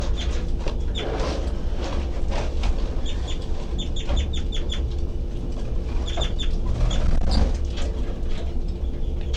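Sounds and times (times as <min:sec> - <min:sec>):
low rumbling background: 0:00.0 - 0:09.3
baby birds' high-pitched calls: 0:03.0 - 0:04.9, 0:06.0 - 0:07.4.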